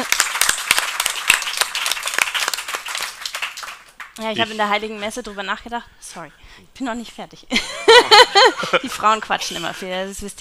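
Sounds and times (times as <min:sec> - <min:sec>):
audience applause: 0:00.0 - 0:04.2
speech: 0:04.2 - 0:10.3
laughter: 0:07.5 - 0:10.0.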